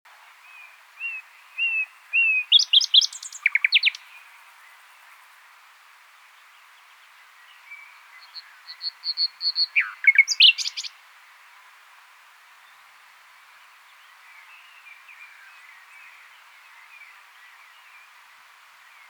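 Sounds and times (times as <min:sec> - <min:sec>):
common nightingale singing: 0:01.1 - 0:04.0, 0:09.0 - 0:10.9
speech: 0:09.2 - 0:10.7.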